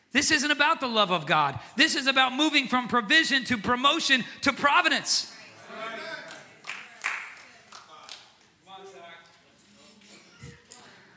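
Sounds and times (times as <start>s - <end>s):
speech: 0.1s - 5.9s
sharp hand claps: 6.3s - 8.6s.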